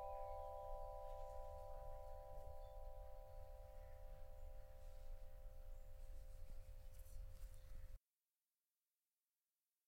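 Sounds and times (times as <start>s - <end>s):
metallophone: 0.0s - 7.4s.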